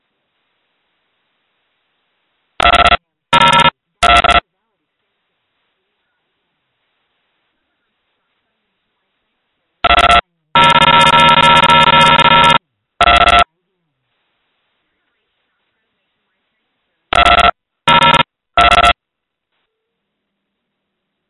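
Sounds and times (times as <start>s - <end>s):
cell phone calling: 2.6s - 4.4s, 9.8s - 13.5s, 17.1s - 19.0s.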